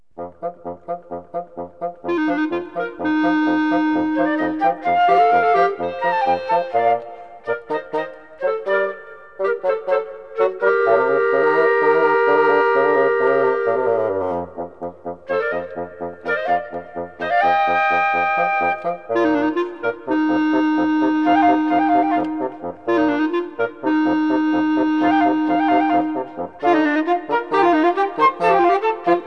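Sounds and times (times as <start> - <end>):
flute: 0.2 - 29.2.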